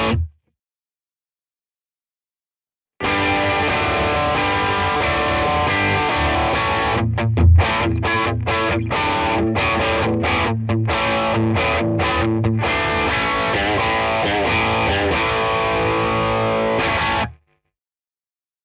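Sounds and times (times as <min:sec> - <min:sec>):
crunchy overdriven rock guitar chords: 0:00.0 - 0:00.3, 0:03.0 - 0:17.4.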